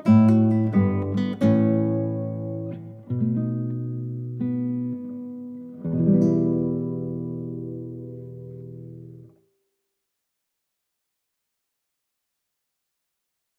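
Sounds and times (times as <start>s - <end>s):
sad guitar melody: 0.0s - 9.4s.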